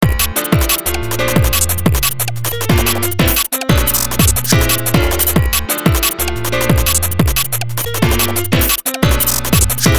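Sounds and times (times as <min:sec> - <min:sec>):
breakbeats: 0:00.0 - 0:09.9.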